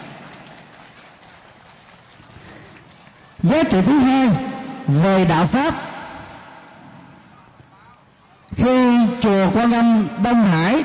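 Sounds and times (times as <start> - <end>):
audience applause: 0.0 - 3.4
speech: 3.4 - 5.9, 8.6 - 10.8.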